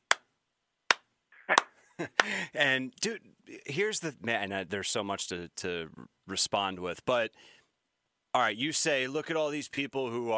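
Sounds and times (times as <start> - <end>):
slow clap: 0.9 - 2.4
laughter: 1.5 - 2.5
speech: 2.0 - 7.6, 8.4 - 10.3.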